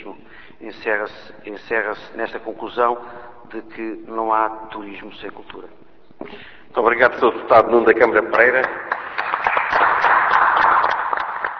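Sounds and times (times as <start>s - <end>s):
speech: 0.7s - 9.0s
applause in parliament chamber: 8.4s - 11.5s.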